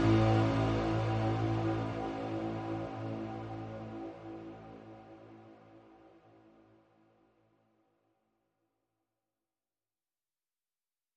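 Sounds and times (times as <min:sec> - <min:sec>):
bass: 0:00.0 - 0:06.6.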